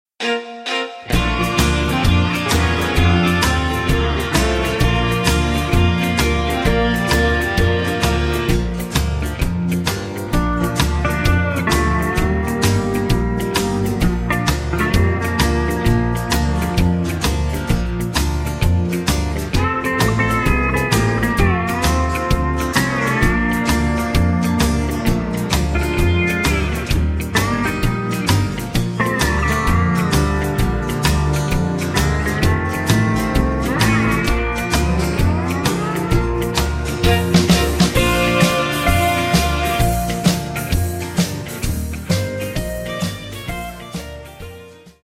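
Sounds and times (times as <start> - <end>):
backing track in B-flat without backing vocals: 0.2 - 45.0.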